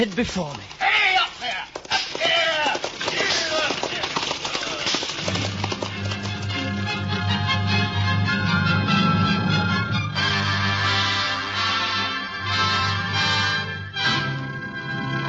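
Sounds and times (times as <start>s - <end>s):
speech: 0.0s - 1.1s
horses' hooves clip-clopping on a road: 0.0s - 8.0s
orchestral music: 5.4s - 15.2s.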